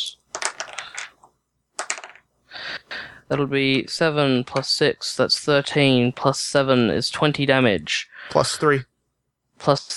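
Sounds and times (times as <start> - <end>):
dice clattering across a hard surface: 0.3 - 2.3
speech: 3.3 - 8.9, 9.6 - 9.9.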